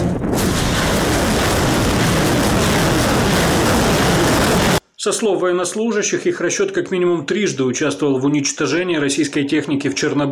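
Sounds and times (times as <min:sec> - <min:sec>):
Uragan multiple rocket launcher firing: 0:00.1 - 0:04.8
speech: 0:05.0 - 0:10.3.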